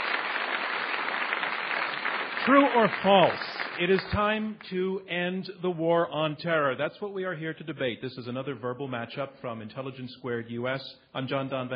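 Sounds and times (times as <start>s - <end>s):
audience applause: 0.0s - 4.6s
speech: 2.4s - 11.7s.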